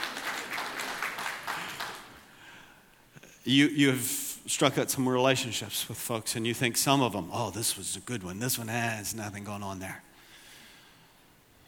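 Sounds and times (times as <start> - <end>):
audience clapping: 0.0 - 2.4
speech: 3.4 - 10.1.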